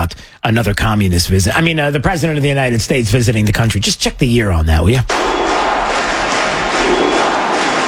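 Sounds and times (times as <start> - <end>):
speech: 0.0 - 5.6
crowd cheering at a baseball stadium in Cuba during a presidential visit: 5.1 - 7.8.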